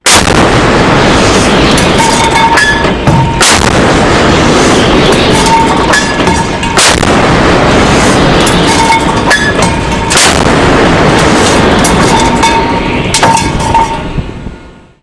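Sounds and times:
Mk 45 naval gun fired: 0.0s - 13.9s.

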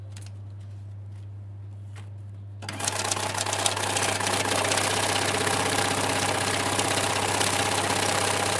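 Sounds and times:
old banknote counter machine: 2.7s - 8.5s.

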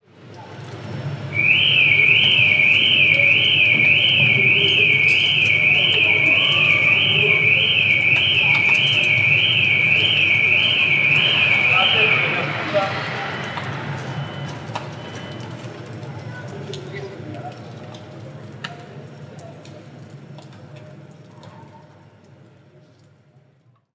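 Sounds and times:
car alarm in Rome: 1.3s - 15.7s.

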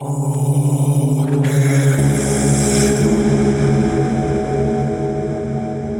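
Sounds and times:
Arabic ambient chill vocal music: 0.0s - 5.9s.

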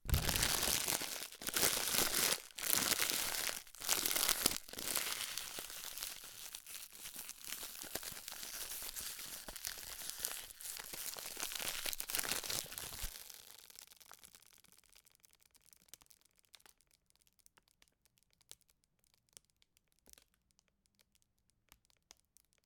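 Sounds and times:
plastic handling: 0.0s - 13.2s.

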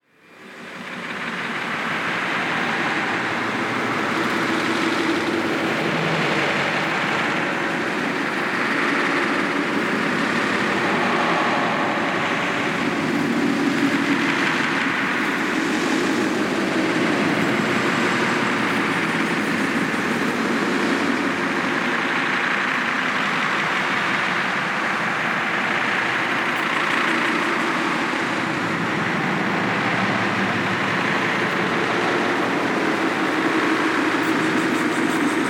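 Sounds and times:
freight train: 0.0s - 35.4s.

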